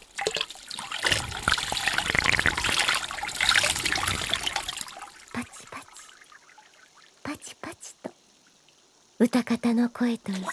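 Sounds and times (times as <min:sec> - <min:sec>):
warm water poured around the ears: 0:00.0 - 0:07.2
speech: 0:09.2 - 0:10.5.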